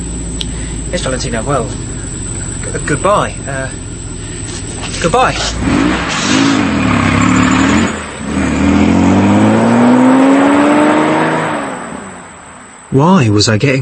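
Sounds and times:
truck engine pulling away: 0.0 - 12.9
speech: 0.9 - 1.9, 2.6 - 3.8, 5.0 - 6.2, 12.9 - 13.8.

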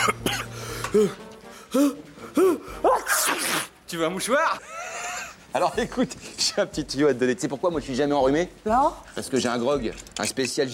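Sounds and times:
person coughing: 0.0 - 1.2
speech: 0.0 - 4.8, 5.5 - 10.7.

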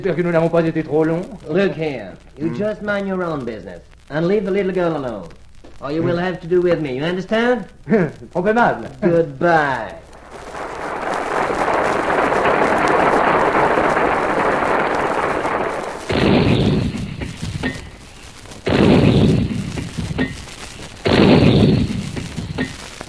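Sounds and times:
speech: 0.0 - 10.1
three theatre knocks as heavy booming blasts announcing war: 10.1 - 23.0.

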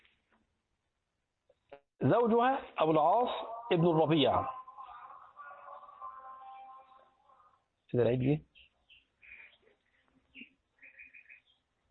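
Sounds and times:
speech: 1.7 - 4.6, 7.9 - 8.7
sparrows chirping: 2.7 - 11.9.

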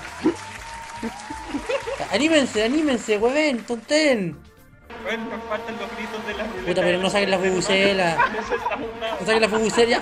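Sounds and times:
faint audience applause: 0.0 - 3.0
laughter: 0.2 - 2.5, 6.8 - 10.0
speech: 1.0 - 1.4, 2.1 - 10.0.

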